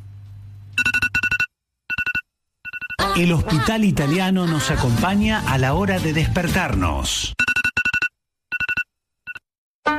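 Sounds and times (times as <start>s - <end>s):
alarm clock ringing with electronic beeps: 0.8s - 3.0s, 7.4s - 9.4s
speech: 3.2s - 7.4s.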